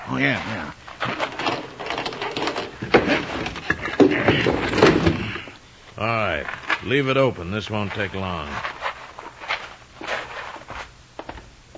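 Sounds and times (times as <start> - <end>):
speech: 0.1 - 1.3, 6.0 - 8.8
sliding door being unlocked and slid open: 1.0 - 5.3.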